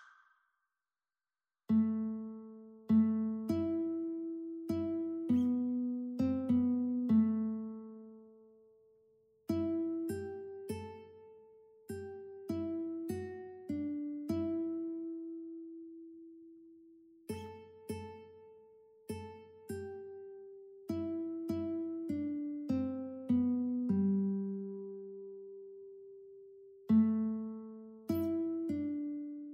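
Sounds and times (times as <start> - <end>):
guitar duet: 1.7 - 8.4, 9.5 - 16.5, 17.3 - 29.5.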